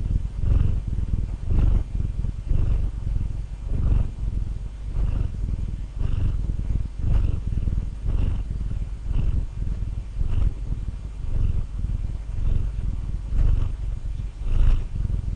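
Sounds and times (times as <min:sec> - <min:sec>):
domestic cat purring: 0:00.0 - 0:15.3.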